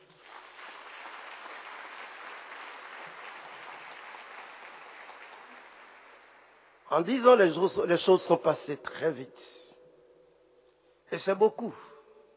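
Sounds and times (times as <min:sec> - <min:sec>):
audience applause celebrating a priest's appointment as rector of a basilica: 0:00.0 - 0:06.8
speech: 0:06.9 - 0:09.7, 0:11.1 - 0:11.9.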